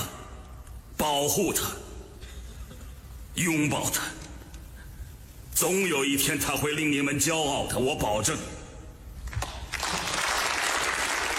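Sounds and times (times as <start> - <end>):
speech: 1.1 - 1.9, 3.4 - 4.2, 5.6 - 8.6
audience applause: 9.4 - 11.3.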